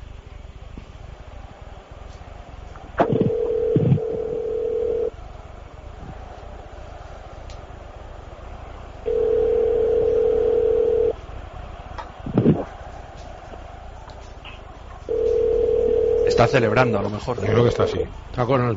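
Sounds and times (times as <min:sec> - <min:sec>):
telephone ringback tone: 0:03.0 - 0:05.1, 0:09.1 - 0:11.2, 0:15.1 - 0:16.6
speech: 0:16.4 - 0:18.7.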